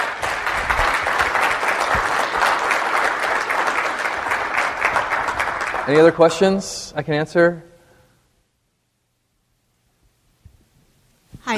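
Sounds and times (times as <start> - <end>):
crowd clapping: 0.0 - 6.6
speech: 5.9 - 7.7.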